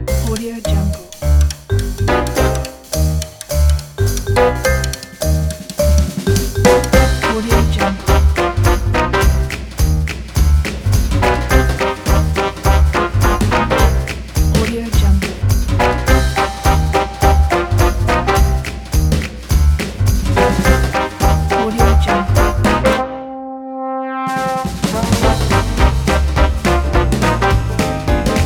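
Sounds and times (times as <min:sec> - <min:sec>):
upbeat jazz orchestra: 0:00.1 - 0:23.2, 0:24.1 - 0:28.4.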